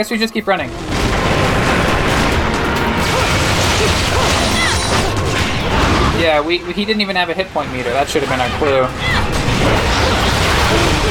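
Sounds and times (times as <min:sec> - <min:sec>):
speech: 0:00.0 - 0:01.7, 0:06.2 - 0:10.8
enemy missile fire in a video game: 0:00.6 - 0:11.1.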